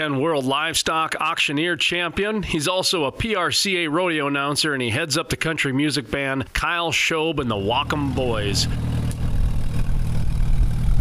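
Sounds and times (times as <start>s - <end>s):
speech: 0.0s - 8.9s
heavy machinery purring along the streets of Dickinson, North Dakota, in a parade: 7.4s - 11.0s.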